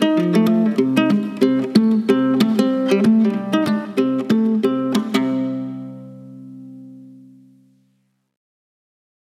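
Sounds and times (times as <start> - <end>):
country guitar ringtone on a Mudita Pure phone: 0.0 - 7.4.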